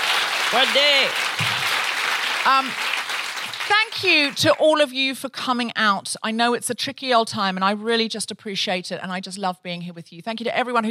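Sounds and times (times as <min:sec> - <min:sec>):
audience applause: 0:00.0 - 0:04.5
speech: 0:00.5 - 0:01.5, 0:02.4 - 0:02.9, 0:03.7 - 0:10.8.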